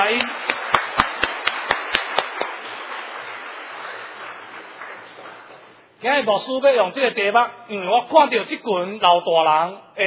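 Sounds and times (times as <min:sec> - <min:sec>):
audience applause: 0:00.0 - 0:06.0
speech: 0:06.0 - 0:10.0.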